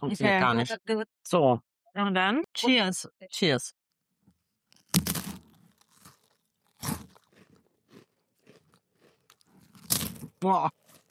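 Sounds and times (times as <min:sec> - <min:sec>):
speech: 0:00.0 - 0:03.8, 0:10.4 - 0:11.0
chewing crunchy freeze-dried gummy bears: 0:04.7 - 0:11.0.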